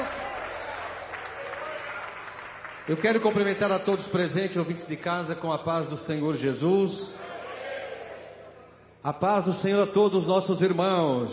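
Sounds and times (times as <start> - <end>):
church congregation applauding: 0.0 - 4.4
speech: 2.9 - 7.2, 9.0 - 11.3.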